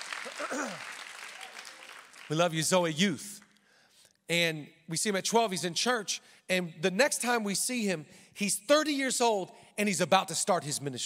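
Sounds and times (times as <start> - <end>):
church crowd applause: 0.0 - 2.5
speech: 0.2 - 1.0, 2.3 - 3.4, 4.3 - 11.0.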